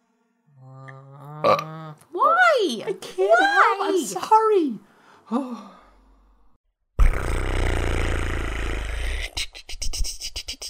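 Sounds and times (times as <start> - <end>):
burp: 0.6 - 2.0, 7.0 - 9.2
speech: 1.4 - 5.7.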